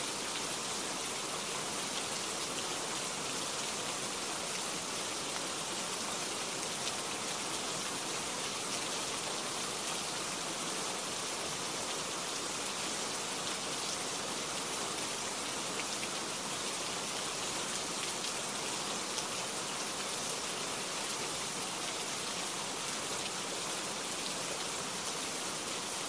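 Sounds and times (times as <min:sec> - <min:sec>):
light rain: 0:00.0 - 0:26.0.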